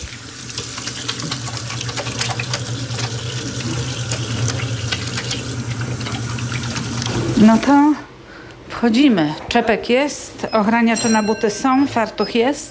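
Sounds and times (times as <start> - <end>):
hands washed under a running tap: 0.0 - 7.8
speech: 7.4 - 8.0, 8.8 - 12.6.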